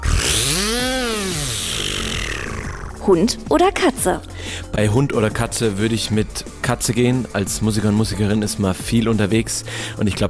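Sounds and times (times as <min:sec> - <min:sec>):
voice imitating a buzzing firework: 0:00.0 - 0:03.0
speech: 0:03.1 - 0:10.2.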